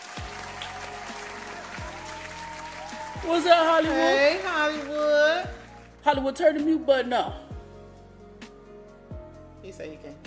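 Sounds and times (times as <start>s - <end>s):
round of applause: 0.0s - 6.1s
speech: 3.2s - 7.4s, 9.7s - 10.2s.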